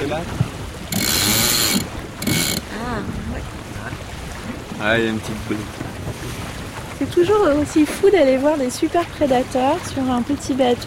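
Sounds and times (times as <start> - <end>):
wind and water: 0.0 - 10.8
speech: 0.1 - 0.5, 4.8 - 6.4, 7.0 - 10.8
sailboat winch ratcheting as genoa is trimmed: 0.9 - 2.6.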